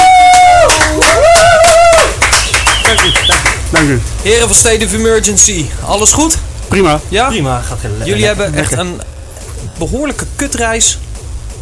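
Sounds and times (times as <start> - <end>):
audience applause: 0.0 - 4.0
speech: 3.8 - 11.0.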